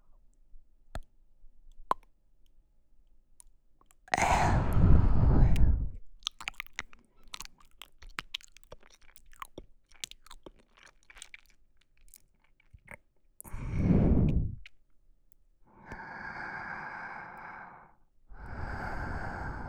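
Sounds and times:
sleeping breathing: 0:04.2 - 0:06.0, 0:13.5 - 0:14.6, 0:15.7 - 0:19.6.

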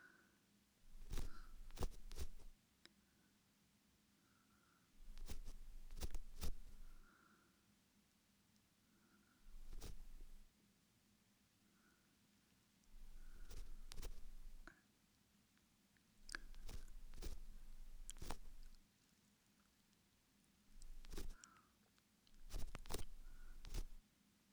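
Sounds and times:
ear pick cleaning in the left ear: 0:01.0 - 0:02.5, 0:05.1 - 0:06.8, 0:13.2 - 0:14.6, 0:16.4 - 0:18.8, 0:20.8 - 0:21.4, 0:22.4 - 0:24.0.

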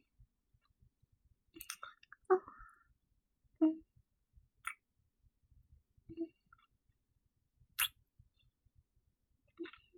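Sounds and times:
kissing sounds: 0:01.6 - 0:01.9, 0:04.6 - 0:04.8, 0:07.8 - 0:08.0.

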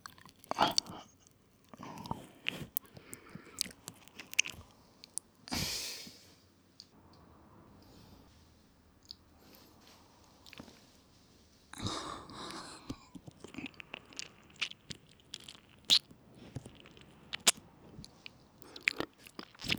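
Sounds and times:
ear licking sounds in right ear: 0:00.0 - 0:05.4, 0:11.8 - 0:19.7.

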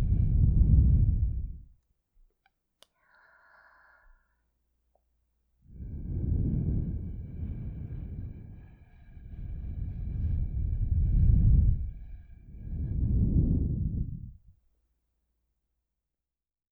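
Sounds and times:
blowing into ears through a straw: 0:00.0 - 0:01.6, 0:05.7 - 0:14.5.

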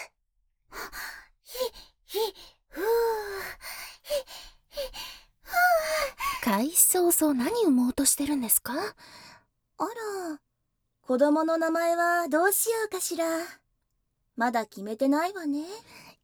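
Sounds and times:
deep breath: 0:00.7 - 0:06.5, 0:09.0 - 0:09.5
speech: 0:06.5 - 0:10.4, 0:11.1 - 0:13.6, 0:14.3 - 0:16.0.

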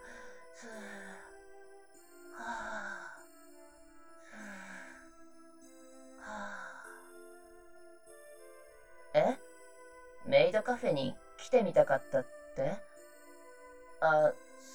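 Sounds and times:
woman breathing deeply to calm herself: 0:00.0 - 0:01.6, 0:02.3 - 0:07.3
faint music: 0:00.0 - 0:14.7
speech: 0:10.5 - 0:12.9, 0:14.0 - 0:14.7.

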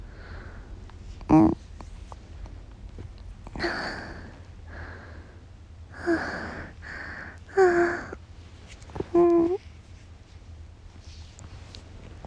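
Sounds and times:
female university student masturbating: 0:01.3 - 0:01.6, 0:03.5 - 0:04.3, 0:07.5 - 0:08.2, 0:09.1 - 0:09.6.

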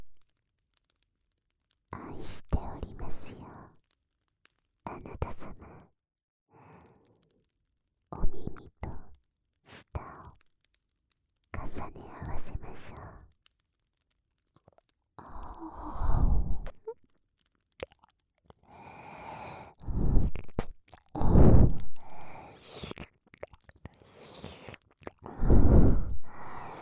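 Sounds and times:
person whispering affectionately: 0:01.9 - 0:03.8, 0:04.9 - 0:06.0, 0:08.1 - 0:10.5, 0:11.6 - 0:13.4, 0:15.2 - 0:17.0, 0:18.8 - 0:23.2, 0:23.8 - 0:26.8
ear licking ASMR sounds: 0:14.5 - 0:26.8.

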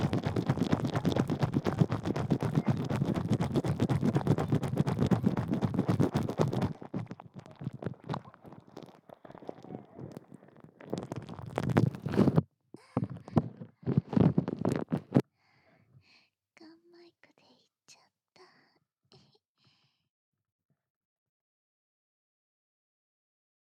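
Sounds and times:
sounds inside a vagina recorded with a shotgun microphone: 0:00.0 - 0:15.2.

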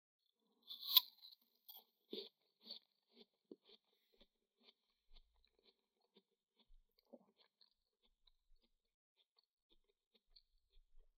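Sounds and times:
person eating an apple, biting and crunching: 0:00.7 - 0:08.8.

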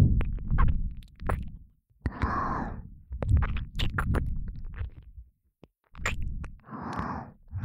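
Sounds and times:
wet ear licking with saliva: 0:00.2 - 0:02.3, 0:03.1 - 0:06.6.

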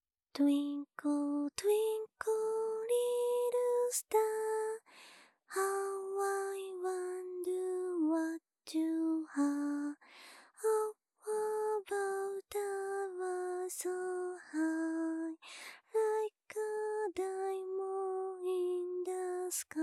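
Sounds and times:
lullaby sung in English: 0:00.4 - 0:04.8, 0:05.5 - 0:10.0, 0:10.6 - 0:19.8.

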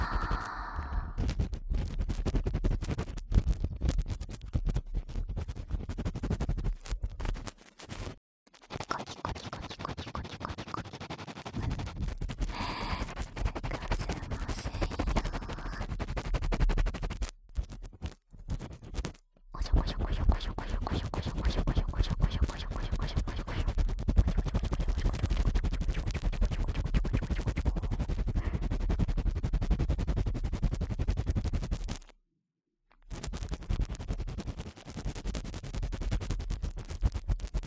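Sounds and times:
quick ASMR scratching: 0:00.0 - 0:32.1, 0:33.1 - 0:37.6.

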